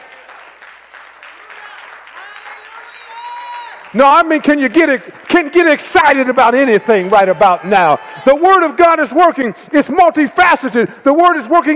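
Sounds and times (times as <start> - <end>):
audience clapping: 0.0 - 8.8
speech: 3.9 - 11.7.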